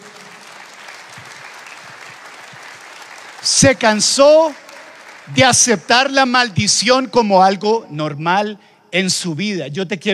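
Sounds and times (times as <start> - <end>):
audience clapping: 0.0 - 7.1
speech: 3.4 - 4.6, 5.3 - 10.1.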